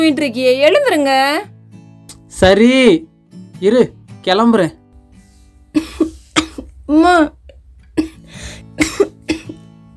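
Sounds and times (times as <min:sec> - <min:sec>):
speech: 0:00.0 - 0:01.5, 0:02.4 - 0:04.8, 0:06.9 - 0:07.4
harsh chesty coughs from a person ill with Covid: 0:05.8 - 0:06.8, 0:08.0 - 0:09.6.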